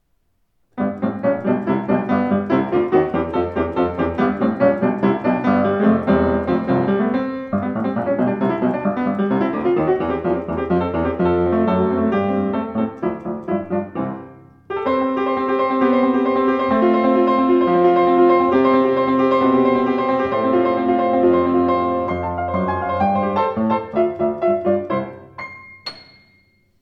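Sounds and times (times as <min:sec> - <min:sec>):
Steinway Model Z piano playing rag: 0:00.7 - 0:26.8.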